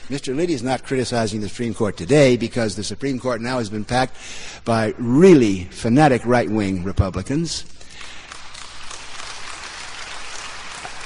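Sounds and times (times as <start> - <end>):
speech: 0.1 - 7.8
crowd applauding: 8.0 - 11.0
crowd cheering: 8.7 - 11.0.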